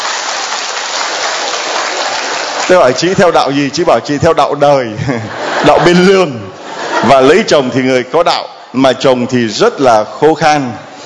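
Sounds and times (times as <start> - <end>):
audience applause during a Christian sermon: 0.0 - 3.2
speech: 2.7 - 10.8
laughter: 4.8 - 7.6.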